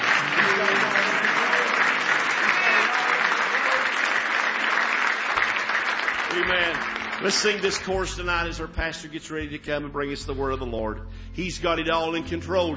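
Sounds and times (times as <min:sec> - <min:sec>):
large audience clapping hands in praise: 0:00.0 - 0:08.0
faint voices and cheers: 0:00.2 - 0:04.5
speech: 0:06.6 - 0:12.7.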